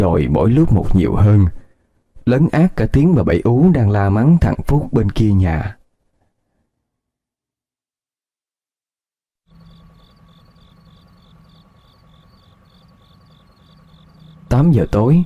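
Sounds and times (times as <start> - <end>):
speech: 0.1 - 1.6, 2.2 - 5.8, 14.5 - 15.2
crickets chirping at night: 9.5 - 15.2.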